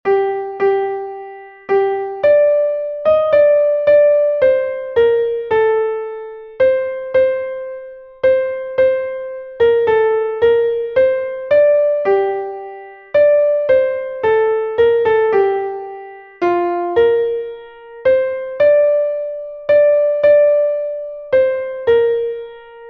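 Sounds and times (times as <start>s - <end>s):
piano: 0.0s - 22.8s.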